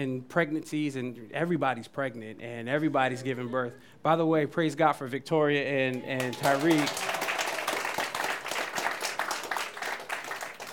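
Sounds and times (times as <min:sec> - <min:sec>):
speech: 0:00.0 - 0:07.2
audience clapping: 0:05.9 - 0:10.7.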